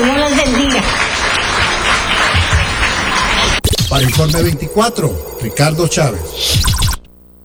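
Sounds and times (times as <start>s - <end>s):
audience applause: 0.0s - 3.6s
speech: 4.0s - 6.8s.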